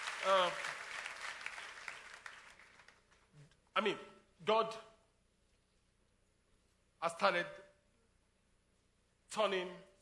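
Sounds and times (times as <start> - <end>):
audience clapping: 0.0 - 3.4
speech: 0.2 - 0.8, 3.8 - 4.9, 7.0 - 7.6, 9.3 - 9.9.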